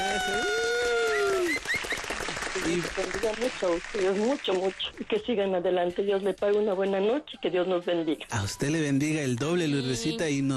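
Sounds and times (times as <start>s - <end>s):
applause for a guest: 0.0s - 5.0s
speech: 2.6s - 10.5s.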